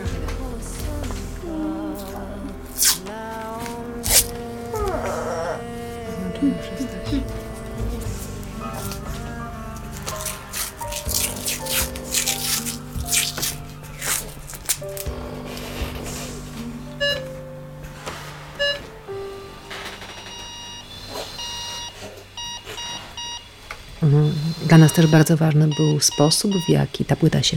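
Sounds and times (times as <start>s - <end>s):
music piece built on ventilator and pulse oximeter rhythm: 0.0s - 24.0s, 24.7s - 26.9s
speech: 6.4s - 6.8s, 25.0s - 27.5s.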